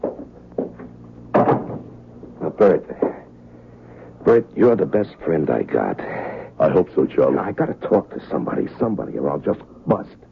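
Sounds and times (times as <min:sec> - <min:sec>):
door being closed: 0:01.3 - 0:01.9
speech: 0:02.6 - 0:02.9, 0:04.4 - 0:10.3.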